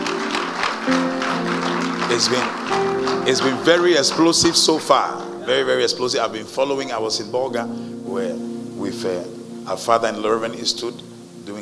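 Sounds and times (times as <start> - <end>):
audience clapping: 0.0 - 5.8
speech: 2.1 - 11.5.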